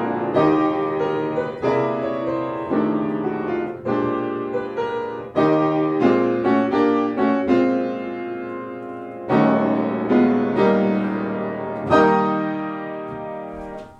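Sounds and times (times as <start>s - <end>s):
Yamaha PSR-E473 keyboard playing a piano piece: 0.0s - 13.9s.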